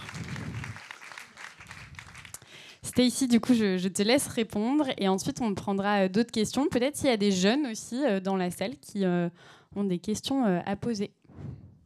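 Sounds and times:
audience applause: 0:00.0 - 0:02.4
speech: 0:03.0 - 0:11.5.

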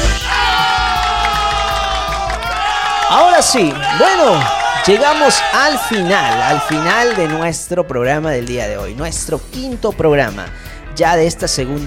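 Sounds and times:
dense crowd cheering, whooping and applauding: 0:00.0 - 0:07.6
speech: 0:03.1 - 0:11.8.

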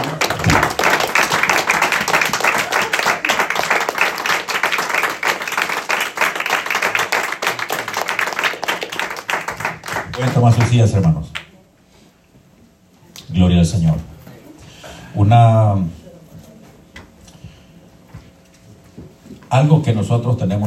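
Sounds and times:
audience applause: 0:00.0 - 0:10.9
speech: 0:10.4 - 0:11.4, 0:13.6 - 0:14.1, 0:15.3 - 0:16.0, 0:19.6 - 0:20.6.

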